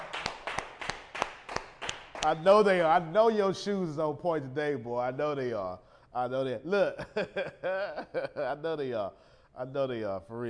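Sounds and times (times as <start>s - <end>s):
hand clapping: 0.0s - 2.4s
speech: 2.2s - 10.4s.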